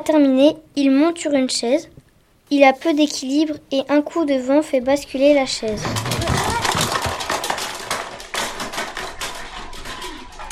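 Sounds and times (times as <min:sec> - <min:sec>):
speech: 0:00.0 - 0:06.4
beer cans tumbling down: 0:05.6 - 0:10.5.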